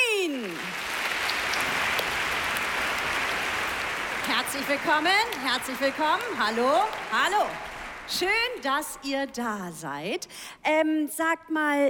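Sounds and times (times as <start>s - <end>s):
applause: 0.0s - 9.1s
speech: 4.6s - 11.8s.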